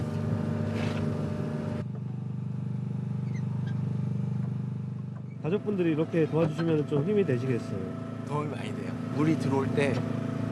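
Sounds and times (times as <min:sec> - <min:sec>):
motorboat engine driving a boat slowly forward at a sea farm: 0:00.0 - 0:10.5
speech: 0:05.5 - 0:10.2.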